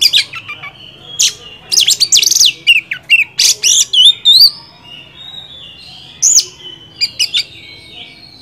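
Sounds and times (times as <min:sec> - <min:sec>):
Oriental magpie-robin song: 0:00.0 - 0:08.3.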